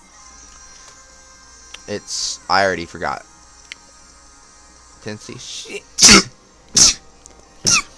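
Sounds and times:
speech: 1.9 - 3.3, 5.0 - 6.9
person sneezing: 6.0 - 7.0, 7.6 - 7.9.

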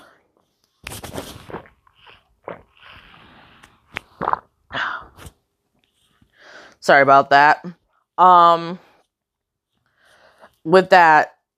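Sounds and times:
person sipping water: 1.1 - 6.4
wet swallowing clicks and small gulps: 1.5 - 3.0, 3.6 - 4.6
speech: 6.9 - 8.9, 10.6 - 11.3.

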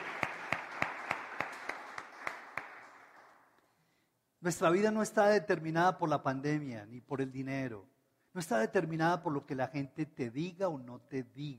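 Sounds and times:
sharp claps in unison: 0.0 - 3.6
speech: 4.4 - 11.5.

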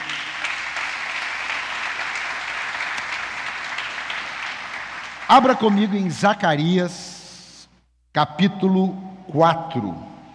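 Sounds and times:
audience applauding: 0.0 - 6.3
speech: 5.3 - 7.1, 8.2 - 10.1.

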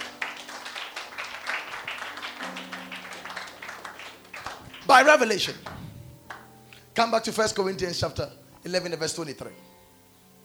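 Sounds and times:
audience clapping hands: 0.0 - 6.5
speech: 4.9 - 5.7, 7.0 - 9.7.

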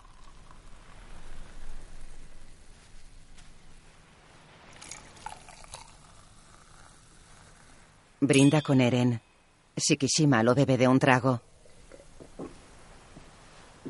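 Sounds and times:
champagne being poured into glass: 0.0 - 0.7, 4.8 - 7.7
speech: 8.2 - 11.5.

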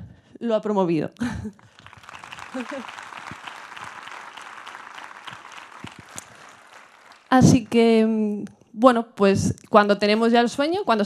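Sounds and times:
speech: 0.4 - 1.8, 2.5 - 3.0, 7.3 - 11.0
audience applause: 1.6 - 8.0.

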